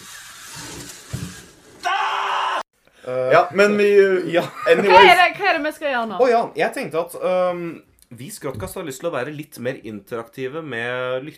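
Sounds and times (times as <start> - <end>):
screaming sound effect for hair being pulled out: 1.8 - 2.7
speech: 3.1 - 11.3
laughter: 4.2 - 5.4.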